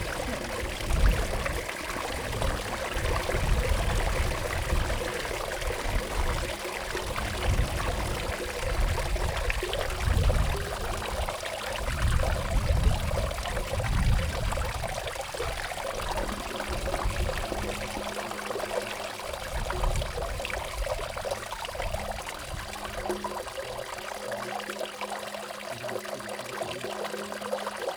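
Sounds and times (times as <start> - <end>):
water poured from a bucket into a trough at a sweep well: 0.0 - 27.9.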